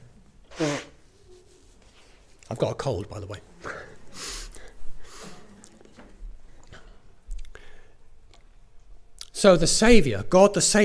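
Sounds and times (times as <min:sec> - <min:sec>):
nose blowing: 0:00.5 - 0:01.4
speech: 0:02.5 - 0:03.5, 0:09.4 - 0:10.8.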